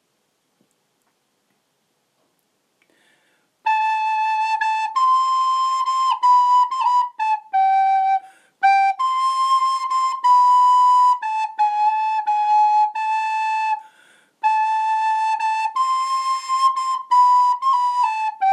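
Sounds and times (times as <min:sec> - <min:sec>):
descant melody: 0:03.6 - 0:13.8, 0:14.4 - 0:18.5.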